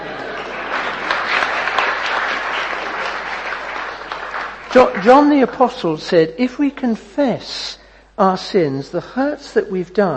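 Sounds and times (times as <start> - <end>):
audience clapping: 0.0 - 5.6
speech: 4.7 - 10.1.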